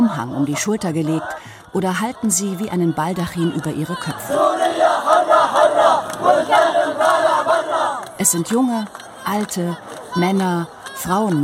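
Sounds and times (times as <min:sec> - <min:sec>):
large crowd cheering and shouting at a street rally: 0:00.0 - 0:08.2, 0:08.9 - 0:11.4
speech: 0:00.1 - 0:11.4.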